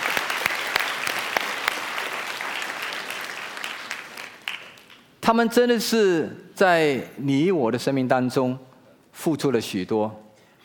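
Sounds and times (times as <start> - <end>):
sustained applause from a sizable audience: 0.0 - 5.0
speech: 5.3 - 10.2.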